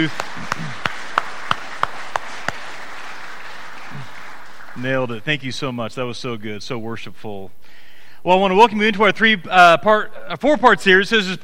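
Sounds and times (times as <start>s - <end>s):
speech: 0.0s - 0.2s, 4.8s - 11.4s
church congregation applauding the worship team: 0.0s - 5.8s.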